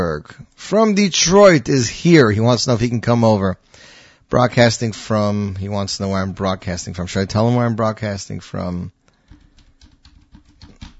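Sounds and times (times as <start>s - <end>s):
speech: 0.0s - 9.0s
typing on a computer keyboard: 9.2s - 10.9s.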